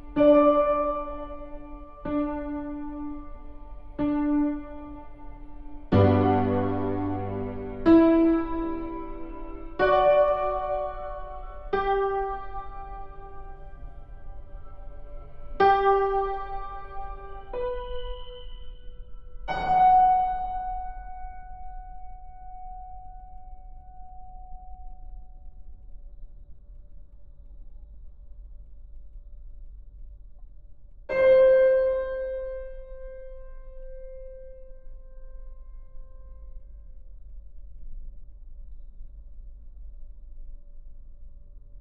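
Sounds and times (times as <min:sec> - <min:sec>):
computer-generated piano playing a folk song slowly: 0:00.0 - 0:25.7, 0:31.1 - 0:37.4
low hum: 0:00.0 - 0:41.8.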